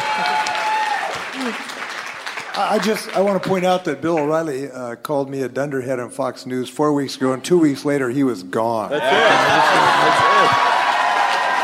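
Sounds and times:
applause: 0:00.0 - 0:04.4, 0:09.4 - 0:11.6
speech: 0:02.6 - 0:10.7
laughter: 0:08.9 - 0:10.9.

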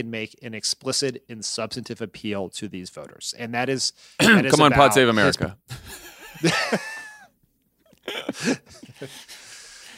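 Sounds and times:
speech: 0:00.0 - 0:06.9, 0:08.1 - 0:09.4
person clearing throat and coughing: 0:04.2 - 0:04.7
laughter: 0:04.5 - 0:07.3, 0:08.0 - 0:09.6.

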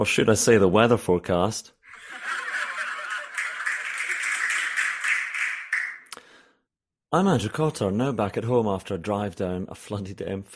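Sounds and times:
speech: 0:00.0 - 0:01.8, 0:07.1 - 0:10.5
snickering laughter: 0:01.9 - 0:04.7
feeble clapping sound effect after a joke: 0:02.0 - 0:06.2.

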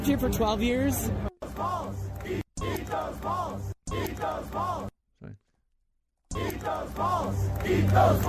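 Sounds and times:
speech: 0:00.0 - 0:02.4, 0:06.6 - 0:08.2
crowd chanting: 0:01.4 - 0:04.9, 0:06.3 - 0:08.2.

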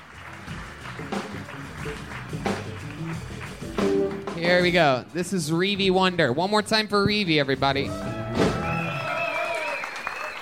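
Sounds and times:
crowd clapping: 0:00.0 - 0:04.7, 0:07.4 - 0:10.4
speech: 0:01.8 - 0:02.5, 0:04.4 - 0:08.1
faint voices and cheers: 0:07.8 - 0:10.4.

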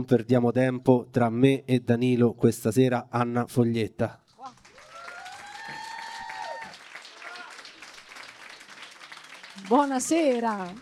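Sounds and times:
speech: 0:00.0 - 0:04.6, 0:09.7 - 0:10.8
audience applauding loudly: 0:04.4 - 0:10.8.

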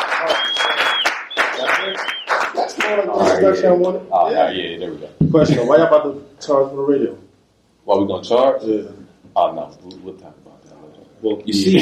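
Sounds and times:
hip-hop talk show audience applause and cheering: 0:00.0 - 0:03.0
high sustained whistle: 0:00.2 - 0:02.6
speech: 0:02.9 - 0:07.2, 0:07.9 - 0:10.6, 0:11.2 - 0:11.7.

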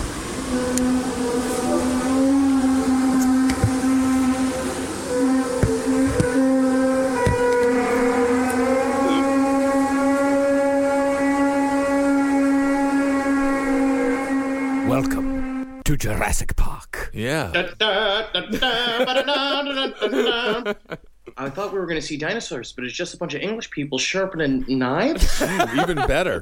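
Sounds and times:
recording of the mysterious British hum: 0:00.0 - 0:15.8
speech: 0:00.5 - 0:01.2, 0:16.0 - 0:16.6, 0:17.2 - 0:20.8, 0:21.4 - 0:26.4
laughter: 0:17.5 - 0:21.6, 0:25.2 - 0:26.4.

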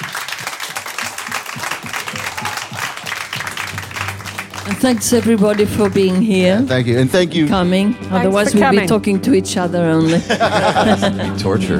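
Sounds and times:
round of applause: 0:00.0 - 0:07.2
speech: 0:04.7 - 0:11.7
laughter: 0:10.0 - 0:11.7.

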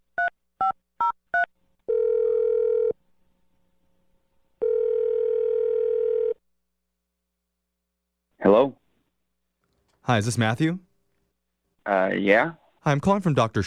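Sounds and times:
telephone ringing tones: 0:01.4 - 0:03.0, 0:04.6 - 0:06.4
speech: 0:10.1 - 0:10.9, 0:11.9 - 0:13.6.

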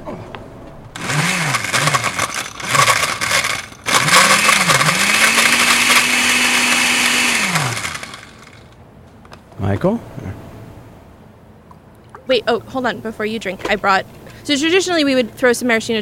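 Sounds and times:
blender whirring as it blends a drink: 0:01.0 - 0:08.7
speech: 0:09.7 - 0:10.4, 0:12.3 - 0:16.0.

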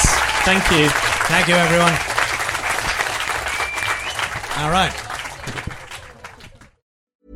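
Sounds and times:
live audience applause: 0:00.0 - 0:06.8
speech: 0:00.5 - 0:02.1, 0:04.6 - 0:05.0.

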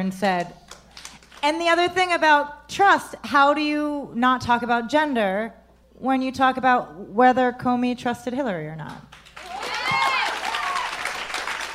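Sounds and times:
speech: 0:00.0 - 0:00.6, 0:01.4 - 0:09.1
audience clapping: 0:00.6 - 0:01.4, 0:09.1 - 0:11.7
high-pitched whoops and cheers: 0:09.4 - 0:11.3.

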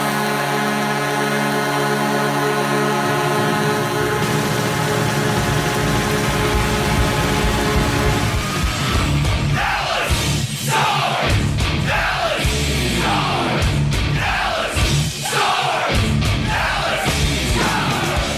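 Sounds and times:
Dallas hockey arena goal horn blaring: 0:00.0 - 0:09.0
roaring crowd yelling and cheering: 0:03.2 - 0:18.3.

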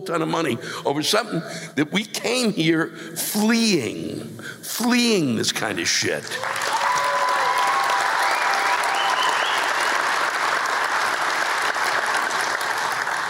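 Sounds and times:
speech: 0:00.0 - 0:06.7
faint cheers: 0:06.3 - 0:10.0
audience applause: 0:06.3 - 0:13.2.

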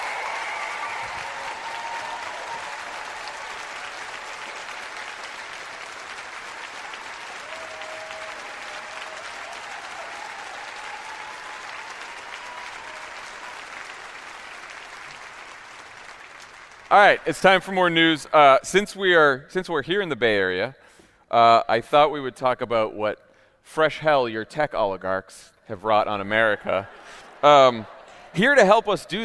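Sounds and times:
cheers and whistles: 0:00.0 - 0:04.6, 0:06.6 - 0:13.9
audience applause: 0:00.0 - 0:17.6
speech: 0:16.9 - 0:29.2.

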